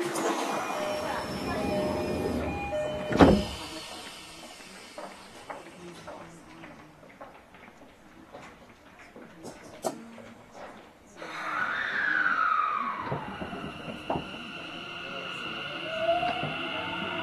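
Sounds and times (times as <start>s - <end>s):
Mitsubishi VVVF inverter whine: 0.2s - 5.9s, 11.2s - 17.2s.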